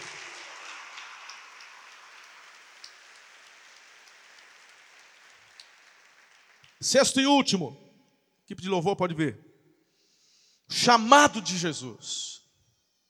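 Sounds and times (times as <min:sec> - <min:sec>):
audience applauding: 0:00.0 - 0:06.9
speech: 0:06.8 - 0:07.8, 0:08.5 - 0:09.5, 0:10.7 - 0:12.3.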